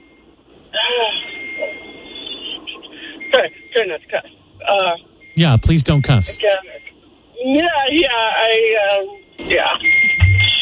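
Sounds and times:
speech: 3.4 - 10.2
electronic beeping, possibly a fryer timer: 5.4 - 6.4, 10.2 - 10.5.

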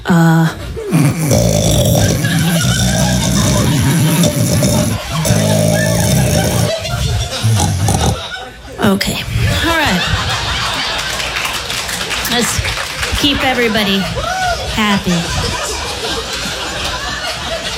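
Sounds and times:
voice imitating a sea cow: 0.0 - 8.3
laughter: 0.8 - 8.8, 9.4 - 17.7
speech: 14.9 - 15.6.

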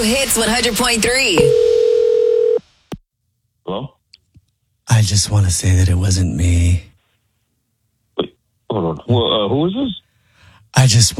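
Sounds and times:
speech: 0.0 - 1.7, 4.9 - 6.9, 8.7 - 10.0, 10.8 - 11.1
telephone line tone for a radio prank call: 1.4 - 2.6.

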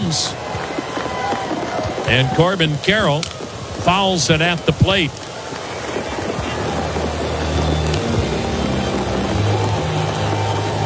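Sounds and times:
heavy rain falling on a ballpark: 0.0 - 10.8
speech: 0.1 - 0.4, 2.1 - 5.2
low droning rumble: 6.1 - 10.8.

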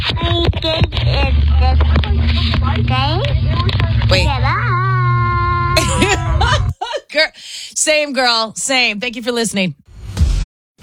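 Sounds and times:
car being driven: 0.0 - 6.7
young child babbling and chattering: 4.4 - 6.6
laughter: 5.6 - 7.1
speech: 7.9 - 9.9.

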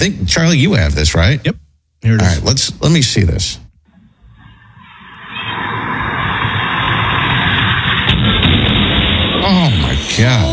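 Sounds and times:
speech: 0.0 - 3.6, 9.6 - 10.5
sharp cracks and bangs: 5.6 - 10.5
car smashing into a house: 6.2 - 9.7.

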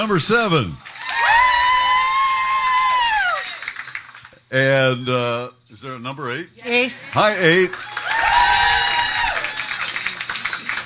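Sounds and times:
speech: 0.0 - 0.9, 4.5 - 8.0
audience applause in a contest: 0.8 - 4.4, 7.1 - 10.8.

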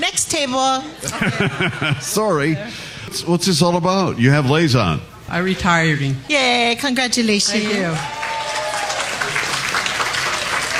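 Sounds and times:
speech: 0.2 - 8.2
laughter: 1.0 - 2.6
audience applause: 7.6 - 10.7.

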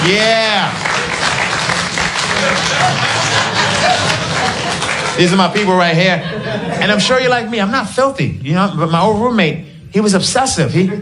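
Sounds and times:
speech: 0.0 - 0.4, 5.2 - 11.0
audience clapping: 0.0 - 6.0
laughter: 0.8 - 7.7, 10.7 - 11.0.

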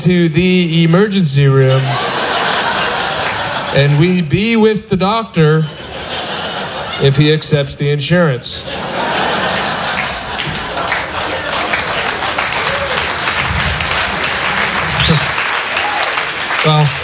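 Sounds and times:
speech: 0.0 - 2.2, 3.7 - 5.9, 7.0 - 9.1
laughter: 1.6 - 4.4, 5.4 - 7.5, 8.5 - 17.0
audience applause: 1.9 - 4.0, 8.7 - 17.0
faint voices and cheers: 10.8 - 17.0.

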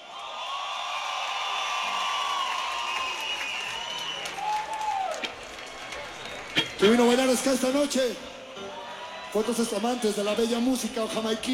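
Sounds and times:
large crowd clapping: 0.0 - 8.1
large crowd cheering: 0.0 - 11.5
speech: 6.8 - 8.3, 9.3 - 11.5.

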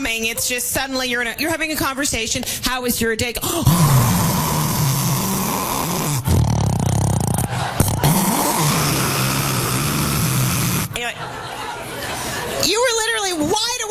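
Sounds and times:
speech: 0.0 - 4.6
person imitating snoring: 3.4 - 11.0
laughter: 7.0 - 12.9.

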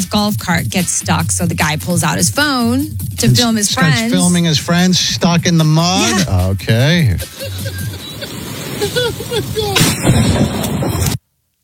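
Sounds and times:
speech: 0.1 - 7.9, 8.8 - 11.1
laughter: 3.2 - 10.0
lightning strike thunderclap: 7.7 - 11.2.

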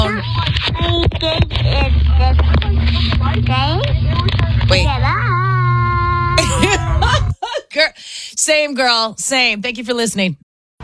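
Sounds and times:
car driving heard from inside: 0.2 - 7.3
laughter: 6.3 - 7.7
speech: 8.6 - 10.4.

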